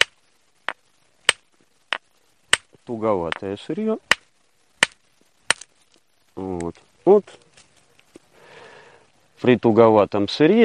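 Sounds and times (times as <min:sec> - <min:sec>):
stone striking a stone core while knapping flakes: 0:00.0 - 0:05.8
speech: 0:02.9 - 0:04.1, 0:09.4 - 0:10.6.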